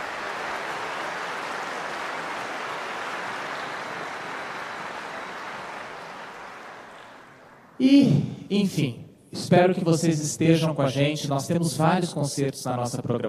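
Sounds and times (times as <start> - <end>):
concert audience applauding: 0.0 - 7.7
speech: 7.8 - 13.2.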